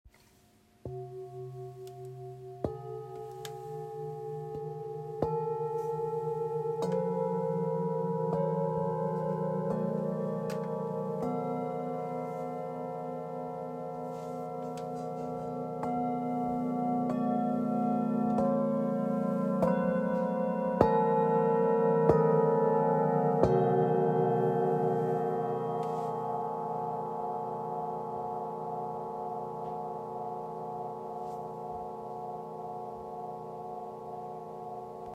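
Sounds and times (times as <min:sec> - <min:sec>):
set of seven chakra singing bowls: 0:00.8 - 0:35.1.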